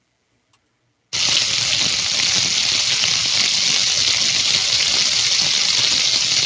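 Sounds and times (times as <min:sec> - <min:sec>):
meat sizzling in a pan: 0:01.1 - 0:06.4.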